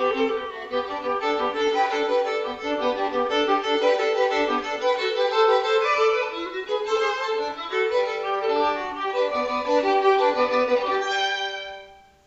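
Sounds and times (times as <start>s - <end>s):
duet: 0.0s - 11.8s.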